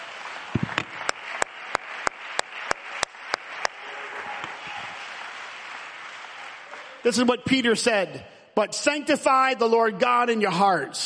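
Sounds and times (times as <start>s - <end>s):
audience clapping in steady rhythm: 0.0s - 7.6s
speech: 7.1s - 11.0s.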